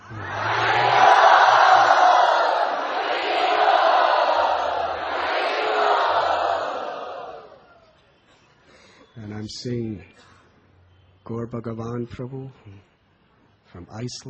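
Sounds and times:
crowd chanting loudly to thank the hosts at a devotional gathering: 0.0s - 7.7s
speech: 9.5s - 10.3s, 11.3s - 12.9s, 13.7s - 14.2s.

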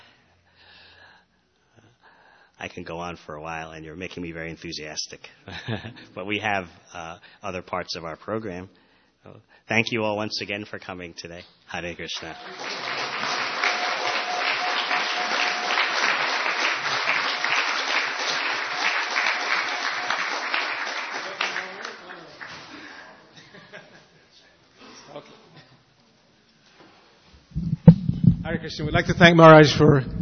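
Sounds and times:
speech: 2.6s - 12.8s, 28.6s - 30.2s
audience applause: 12.3s - 22.8s
laughter: 22.6s - 24.3s.

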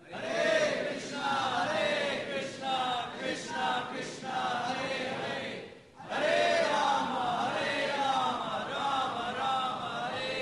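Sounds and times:
audience chanting in unison at a devotional chanting program: 0.0s - 10.4s.

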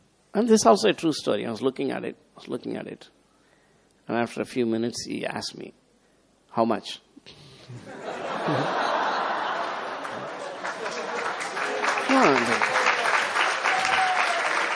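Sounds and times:
speech: 0.4s - 3.2s, 4.1s - 5.8s, 6.5s - 8.9s, 12.1s - 12.8s
laughter: 7.8s - 11.6s
crowd applause: 8.0s - 14.7s.

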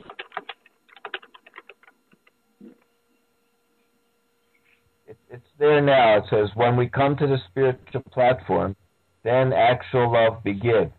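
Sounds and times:
typing on a computer keyboard: 0.0s - 2.3s
speech: 5.3s - 10.9s.

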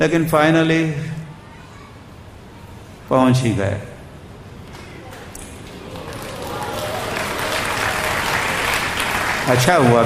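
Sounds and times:
speech: 0.0s - 1.2s, 3.1s - 3.9s, 9.5s - 10.0s
audience clapping: 5.0s - 10.0s.

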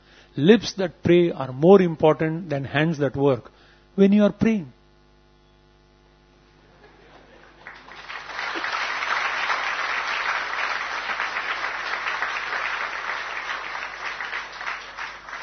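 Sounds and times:
speech: 0.4s - 4.8s
laughter: 6.7s - 8.0s
audience clapping: 7.2s - 15.4s.

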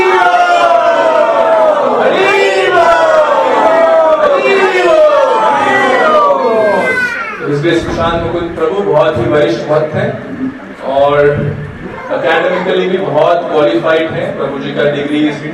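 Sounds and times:
crowd shouting a devotional chant in welcome: 0.0s - 7.1s
speech: 7.6s - 10.3s, 11.1s - 11.6s, 12.2s - 15.5s.

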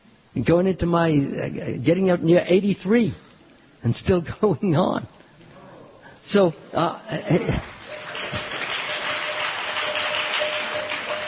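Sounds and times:
speech: 0.4s - 3.2s, 3.8s - 5.2s, 6.2s - 7.7s
chuckling: 7.1s - 7.8s
audience applause for a speaker: 7.6s - 11.2s.

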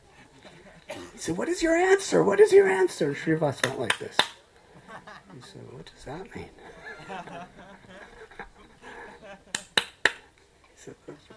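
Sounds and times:
speech: 1.2s - 4.4s, 5.3s - 8.0s, 10.8s - 11.3s
hands clapping: 3.5s - 4.4s, 9.5s - 10.3s
laughter: 4.7s - 9.8s, 10.8s - 11.3s.

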